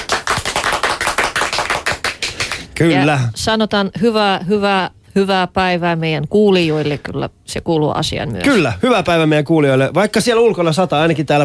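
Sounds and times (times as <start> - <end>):
hand clapping: 0.0 - 2.8
speech: 2.8 - 11.4.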